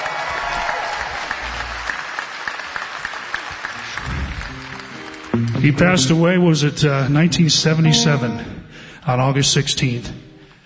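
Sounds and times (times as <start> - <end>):
audience applause: 0.0 - 6.4
speech: 5.6 - 10.2.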